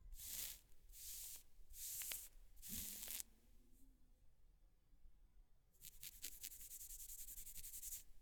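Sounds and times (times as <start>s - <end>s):
scratching: 0.1s - 3.3s, 5.8s - 8.1s.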